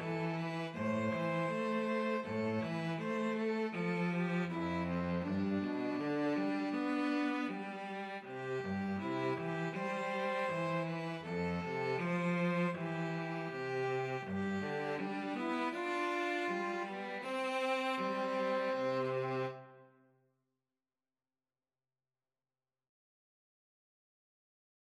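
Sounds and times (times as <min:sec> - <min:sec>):
string trio playing a farewell song: 0:00.0 - 0:19.8.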